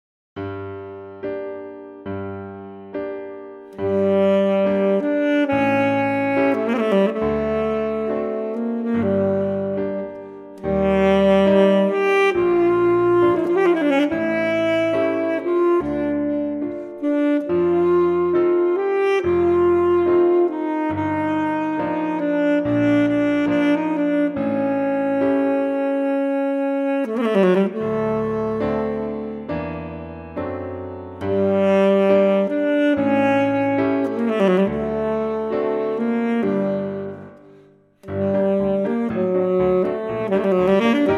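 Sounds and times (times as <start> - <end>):
saxophone playing: 3.7 - 29.8, 30.5 - 41.1.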